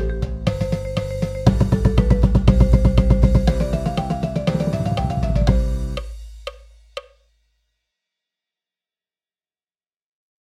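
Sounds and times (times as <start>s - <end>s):
120 BPM drum paradiddle breakdown: 0.0s - 7.2s
countoff: 0.2s - 6.6s.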